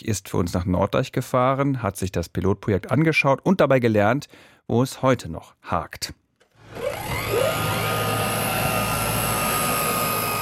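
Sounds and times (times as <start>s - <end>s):
speech: 0.0s - 6.2s
drone motor whine before takeoff at airfield: 6.6s - 10.4s.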